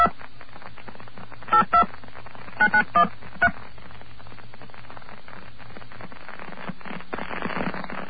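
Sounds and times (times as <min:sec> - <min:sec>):
burst of static: 0:00.0 - 0:08.0
telephone number dialed with touch tones: 0:01.5 - 0:01.9, 0:02.6 - 0:03.1.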